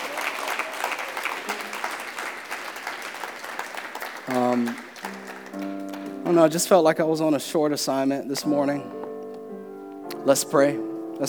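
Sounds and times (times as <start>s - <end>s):
audience clapping: 0.0s - 6.9s
speech: 4.3s - 9.0s, 10.2s - 11.2s.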